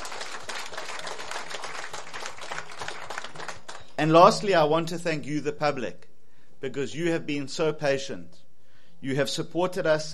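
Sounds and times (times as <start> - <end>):
audience applause: 0.0 - 3.9
speech: 4.0 - 6.0, 6.6 - 8.4, 9.0 - 10.1.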